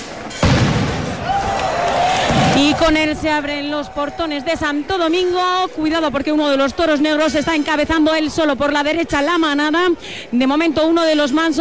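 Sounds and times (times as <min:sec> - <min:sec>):
firework rocket exploding at the start of the San Fermín bull run: 0:00.4 - 0:01.3
speech: 0:02.6 - 0:11.6.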